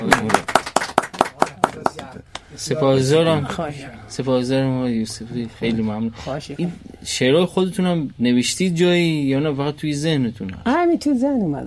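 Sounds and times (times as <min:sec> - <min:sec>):
audience clapping after a poem recitation: 0:00.0 - 0:02.5
speech: 0:02.6 - 0:11.6.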